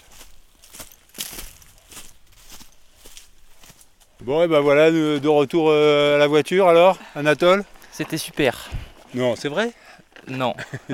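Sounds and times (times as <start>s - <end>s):
footsteps crunching through dry dead leaves at a walking pace: 0.0s - 5.4s
speech: 4.2s - 10.9s
laughter: 10.3s - 10.9s.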